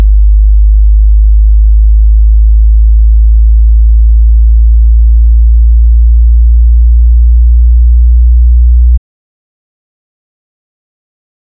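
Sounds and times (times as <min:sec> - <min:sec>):
frequency sweep from 1 Hz to 60 Hz: 0:00.0 - 0:09.0.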